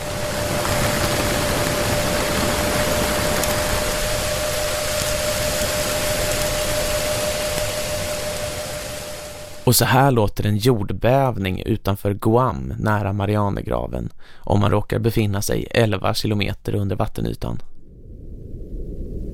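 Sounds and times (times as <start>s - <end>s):
motorboat passing overhead, heard through deep hydrophone: 0.0s - 9.6s
speech: 9.7s - 17.7s.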